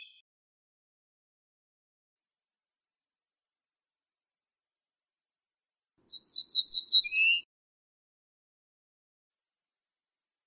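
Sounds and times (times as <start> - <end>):
ortolan bunting singing: 6.1 - 7.5.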